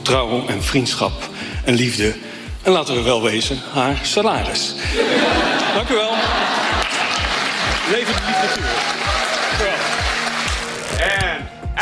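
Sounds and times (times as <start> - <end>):
speech: 0.1 - 6.8, 7.9 - 9.0
laughter: 4.9 - 10.4
audience applause: 6.2 - 10.8.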